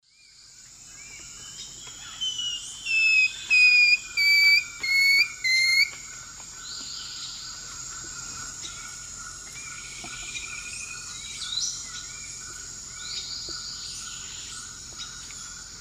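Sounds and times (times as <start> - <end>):
long-tailed woodcreeper Deconychura longicauda song of descending whistled notes: 2.9 - 6.0.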